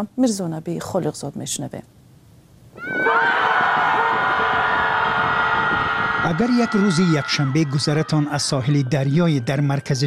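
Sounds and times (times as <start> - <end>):
speech: 0.0 - 2.1, 6.3 - 10.0
group of people screaming together: 2.8 - 8.7.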